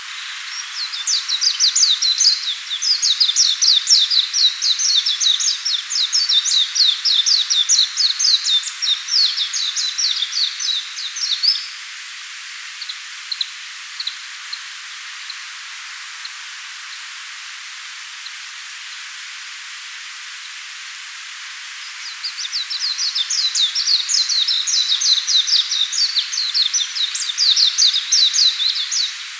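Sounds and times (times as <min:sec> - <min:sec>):
warbling white-eye twittering song: 0:00.1 - 0:11.7, 0:21.8 - 0:29.3
speech: 0:01.1 - 0:05.7.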